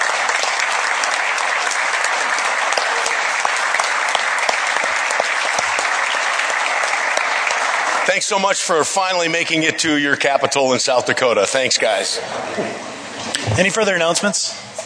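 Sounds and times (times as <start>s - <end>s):
audience applause: 0.0s - 9.7s
speech: 8.2s - 12.9s, 13.6s - 14.7s.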